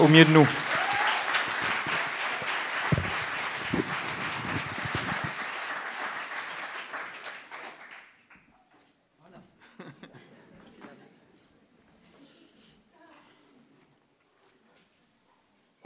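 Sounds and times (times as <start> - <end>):
audience applause welcoming speaker: 0.0 - 8.4
laughter: 9.6 - 10.6.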